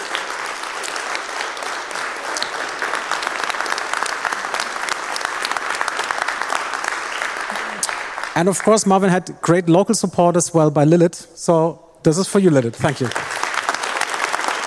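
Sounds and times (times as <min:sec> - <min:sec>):
conference audience applause: 0:00.0 - 0:08.9, 0:12.8 - 0:14.6
speech: 0:08.4 - 0:13.2.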